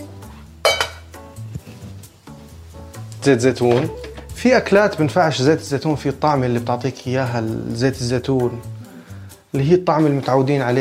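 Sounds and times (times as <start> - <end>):
pots and utensils clinking as cooking of vegetables begins: 0.6 - 1.1
speech: 3.2 - 8.7, 9.5 - 10.7.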